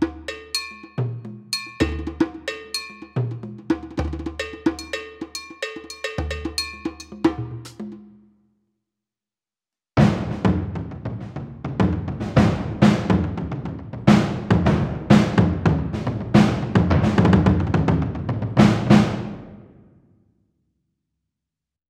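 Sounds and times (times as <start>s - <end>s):
Strike Pro percussion: 0.0s - 8.3s, 10.0s - 19.7s.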